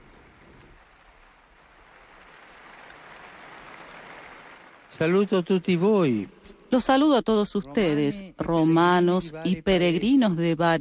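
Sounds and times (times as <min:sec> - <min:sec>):
large crowd applause in square: 0:00.0 - 0:05.8
speech: 0:04.9 - 0:10.7.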